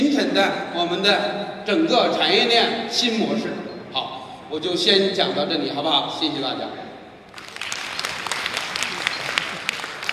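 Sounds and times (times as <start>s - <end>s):
speech: 0.4s - 6.8s
audience applause after lecture: 7.3s - 10.1s.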